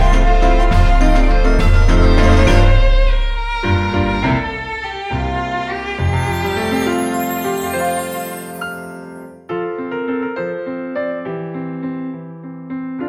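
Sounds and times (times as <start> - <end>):
waltz music: 0.0 - 9.5.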